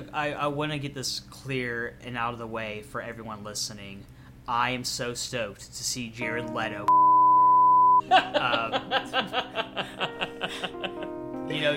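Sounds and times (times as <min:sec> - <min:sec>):
speech: 0:00.1 - 0:07.0, 0:08.0 - 0:11.7
censor bleep: 0:06.9 - 0:08.0
laughter: 0:08.0 - 0:11.2.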